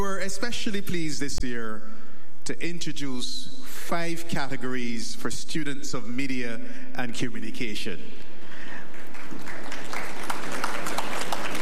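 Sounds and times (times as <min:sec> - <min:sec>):
speech: 0:00.0 - 0:08.2
audience applause: 0:08.8 - 0:11.6.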